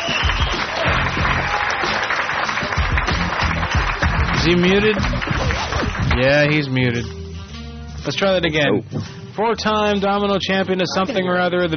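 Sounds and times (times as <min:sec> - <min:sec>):
crowd applauding: 0:00.0 - 0:06.7
laughter: 0:04.0 - 0:06.2, 0:10.8 - 0:11.4
speech: 0:04.4 - 0:05.3, 0:06.2 - 0:07.2, 0:08.0 - 0:11.7.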